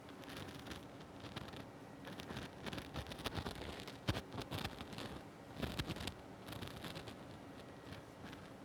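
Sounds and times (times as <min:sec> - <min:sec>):
ear cleaning on the left side: 0:00.1 - 0:08.5.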